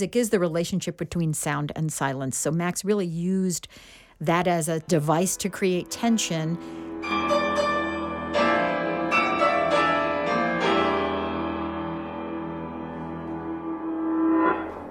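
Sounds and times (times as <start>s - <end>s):
speech: 0.0s - 7.3s
resonant bell tones: 5.0s - 14.8s
humming drone: 13.0s - 14.8s.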